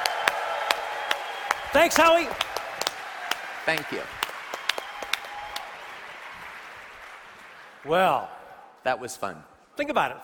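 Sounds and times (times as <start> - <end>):
applause: 0.0 - 8.1
speech: 1.7 - 2.5, 3.7 - 4.2, 7.8 - 10.2.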